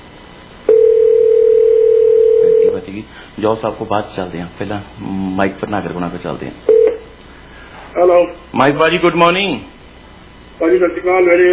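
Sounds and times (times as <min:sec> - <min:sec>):
telephone dial tone while calling: 0:00.7 - 0:02.7
speech: 0:02.9 - 0:06.8, 0:08.0 - 0:09.7, 0:10.6 - 0:11.5.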